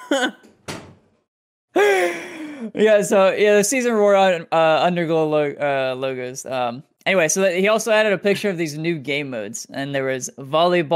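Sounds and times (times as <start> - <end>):
speech: 0.1 - 0.5, 2.7 - 10.9
door closing thud: 0.4 - 1.3.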